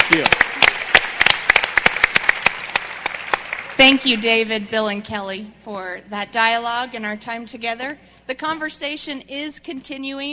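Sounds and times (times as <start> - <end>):
audience applauding senior leaders: 0.0 - 4.5
speech: 0.1 - 0.5, 3.8 - 10.3.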